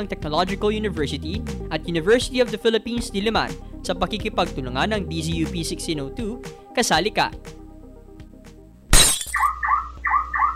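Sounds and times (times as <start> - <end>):
speech: 0.0 - 7.6
car window being smashed: 8.9 - 9.5
repeating electronic alarm tone: 9.5 - 10.5.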